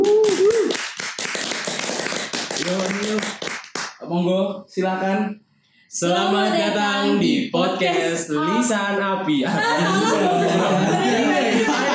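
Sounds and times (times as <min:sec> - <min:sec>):
hand clapping applause: 0:00.0 - 0:04.0
speech: 0:04.1 - 0:11.9
laughter: 0:09.4 - 0:11.9.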